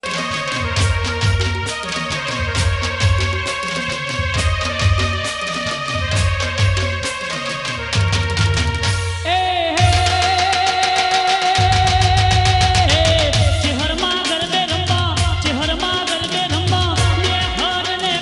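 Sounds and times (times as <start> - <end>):
Garba folk dance music: 0.0 - 18.1.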